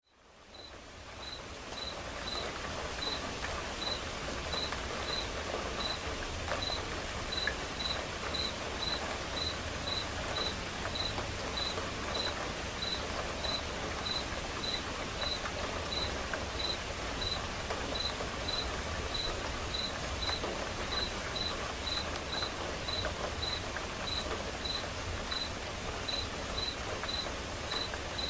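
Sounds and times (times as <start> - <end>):
soft rain: 0.0 - 28.2
cricket chirping: 0.5 - 2.4, 6.6 - 17.4, 18.0 - 20.4, 21.0 - 25.5, 26.1 - 28.2.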